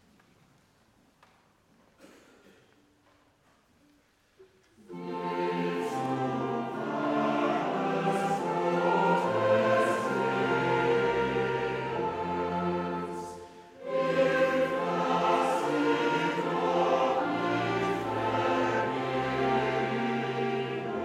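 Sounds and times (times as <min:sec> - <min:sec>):
cantata chorale: 0:04.6 - 0:21.0.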